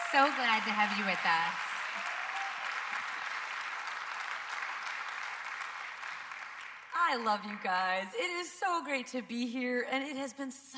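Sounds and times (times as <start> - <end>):
church congregation applauding welcoming a guest pastor: 0.0 - 7.0
speech: 0.1 - 2.1, 7.1 - 10.7.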